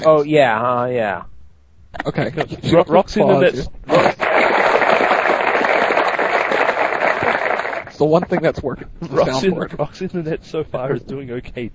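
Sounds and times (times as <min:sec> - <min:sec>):
speech: 0:00.0 - 0:01.3, 0:02.0 - 0:04.2, 0:08.0 - 0:11.7
crowd applause: 0:03.9 - 0:08.0.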